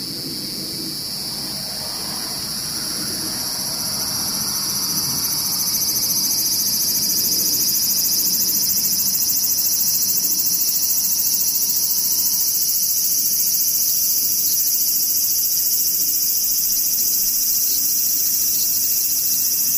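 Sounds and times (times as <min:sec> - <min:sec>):
cicadas and other insects buzzing: 0:00.0 - 0:19.7
faint low rumble: 0:00.1 - 0:06.3.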